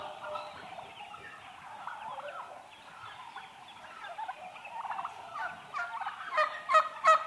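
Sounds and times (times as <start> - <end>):
domestic turkeys clucking, purring and gobbling: 0.0 - 7.2.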